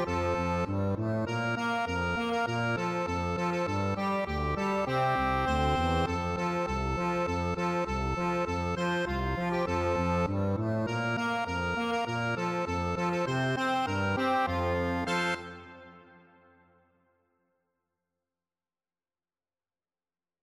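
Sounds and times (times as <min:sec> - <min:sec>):
accordion playing a Christmas tune: 0:00.0 - 0:16.4.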